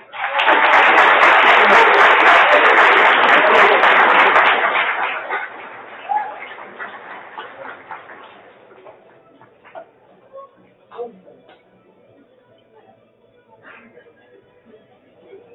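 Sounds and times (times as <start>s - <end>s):
audience applause: 0.0s - 9.8s
laughter: 0.0s - 15.5s.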